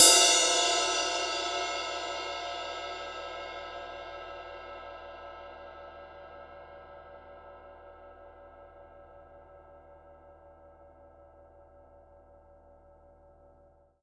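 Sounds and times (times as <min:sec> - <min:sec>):
ride cymbal rim hit: 0:00.0 - 0:06.7.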